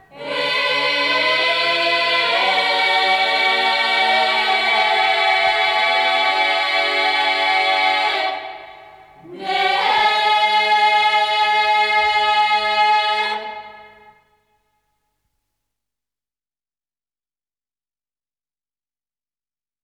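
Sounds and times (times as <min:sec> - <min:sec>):
female vocal choir diaphonic chant: 0:00.0 - 0:14.3.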